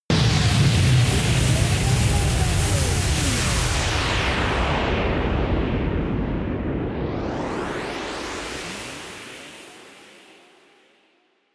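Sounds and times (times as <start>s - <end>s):
storm vortex drones: 0.1s - 9.9s.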